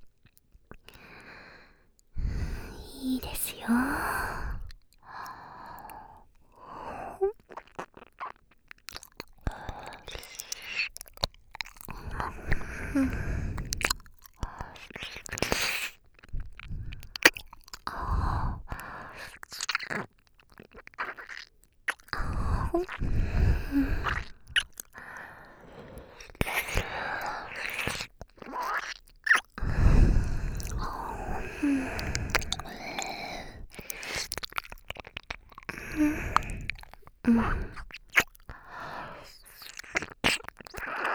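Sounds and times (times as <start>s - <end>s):
quiet breaths and sighs: 0.0s - 8.0s, 8.9s - 41.1s
whispering: 2.5s - 4.7s
chewing and biting: 7.3s - 12.8s, 13.5s - 18.1s, 18.7s - 25.2s, 26.0s - 41.1s.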